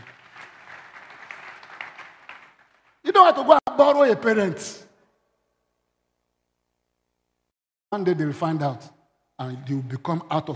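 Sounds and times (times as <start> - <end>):
church congregation clapping hands during a worship service: 0.0 - 3.6
speech: 3.2 - 4.8, 7.9 - 10.5.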